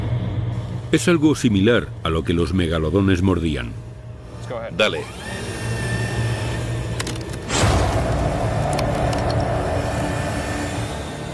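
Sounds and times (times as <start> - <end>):
speech: 0.9 - 3.8, 4.5 - 5.4
hydraulic machine hum: 3.8 - 11.3
cow bone cracking in hydraulic jaws: 7.0 - 9.7.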